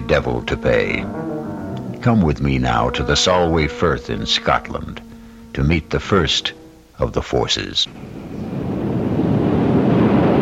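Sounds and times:
speech: 0.1s - 1.3s, 2.0s - 8.1s
incoming tide rushing in on the Solway Firth in Scotland: 0.8s - 2.2s, 7.9s - 10.4s.

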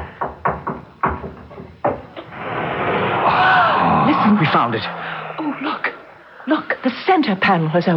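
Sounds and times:
knuckles tapping on a wall searching for a hidden release: 0.0s - 2.2s
steady noise: 1.8s - 7.9s
speech: 4.5s - 7.9s.

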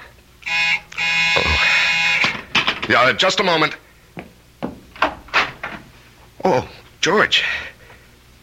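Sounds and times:
telephone ringing: 0.5s - 2.3s
speech: 2.9s - 3.9s, 6.5s - 7.7s.

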